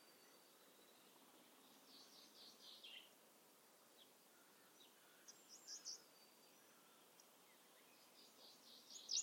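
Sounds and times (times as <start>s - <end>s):
common chaffinch singing: 0.0s - 3.2s, 3.9s - 9.2s.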